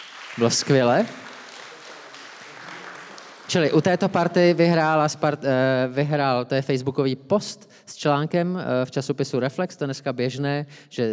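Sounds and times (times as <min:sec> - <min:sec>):
audience applause: 0:00.0 - 0:04.4
speech: 0:00.4 - 0:01.2, 0:03.5 - 0:11.1.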